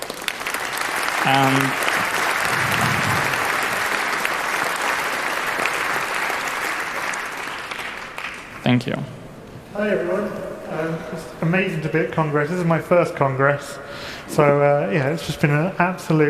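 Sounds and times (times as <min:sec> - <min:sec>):
audience applause: 0:00.0 - 0:08.6
speech: 0:01.2 - 0:01.9, 0:08.7 - 0:09.2, 0:09.8 - 0:16.2.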